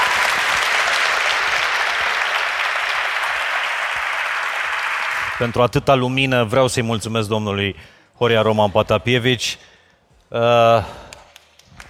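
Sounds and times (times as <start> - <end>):
audience applause: 0.0 - 5.6
speech: 5.4 - 9.7, 10.3 - 11.0.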